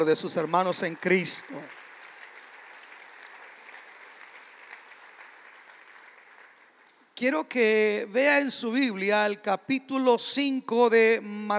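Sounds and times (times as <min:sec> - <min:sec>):
speech: 0:00.0 - 0:01.8, 0:07.2 - 0:11.5
audience applause: 0:00.0 - 0:07.0.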